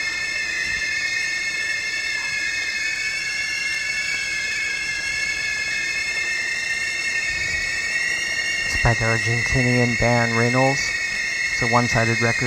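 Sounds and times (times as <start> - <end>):
several boiling teapots whistling: 0.0 - 12.4
low hissing rumble: 7.2 - 12.4
speech: 8.9 - 11.0, 11.6 - 12.4.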